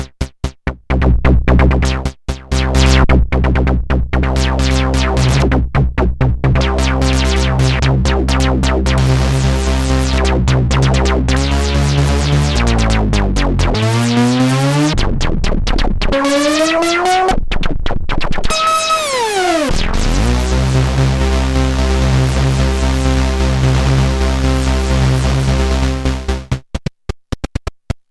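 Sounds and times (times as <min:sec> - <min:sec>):
synthesizer jam: 0:00.0 - 0:17.5, 0:18.1 - 0:26.6.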